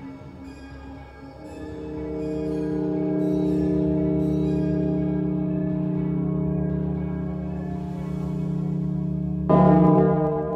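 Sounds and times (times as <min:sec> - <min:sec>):
deep resonant bell tolling: 0:01.4 - 0:10.5.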